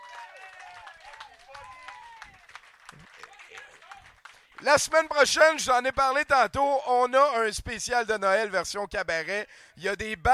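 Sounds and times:
audience applause: 0:00.0 - 0:05.3
speech: 0:04.6 - 0:10.3.

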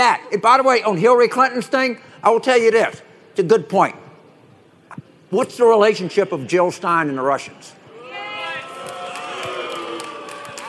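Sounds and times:
speech: 0:00.1 - 0:04.0, 0:05.3 - 0:07.8
crowd booing: 0:07.9 - 0:10.6.

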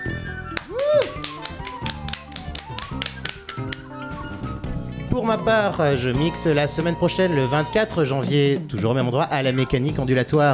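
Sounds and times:
people clapping: 0:00.5 - 0:03.9
speech: 0:05.2 - 0:10.5.

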